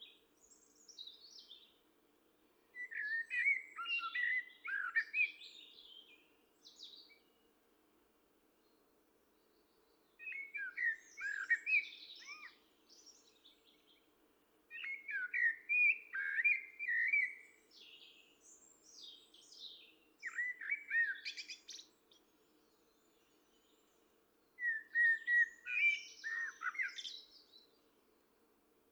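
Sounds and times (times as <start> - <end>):
common blackbird singing: 2.8 - 6.1, 10.2 - 13.8, 14.7 - 21.9, 24.6 - 27.7.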